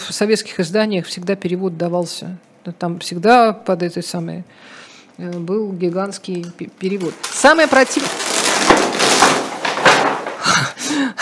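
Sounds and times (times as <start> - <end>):
speech: 0.1 - 8.3
poster falling off a wall: 6.9 - 10.5.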